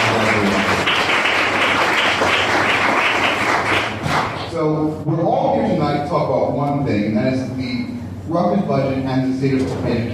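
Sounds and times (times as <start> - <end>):
round of applause: 0.0 - 4.5
speech: 4.6 - 5.3, 5.9 - 10.1.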